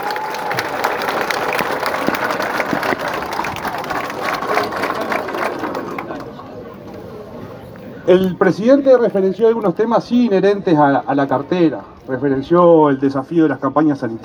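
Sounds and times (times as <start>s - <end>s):
audience applause: 0.0s - 6.4s
speech: 8.1s - 14.2s.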